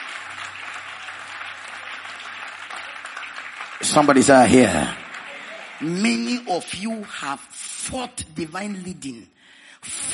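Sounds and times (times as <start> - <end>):
audience clapping: 0.0 - 9.2
speech: 3.8 - 5.0, 5.8 - 10.1.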